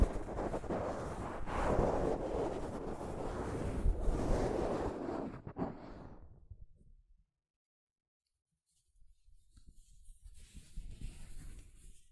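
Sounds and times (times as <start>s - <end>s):
soft fabric brushing against a microphone: 0.0s - 6.1s, 9.5s - 12.1s.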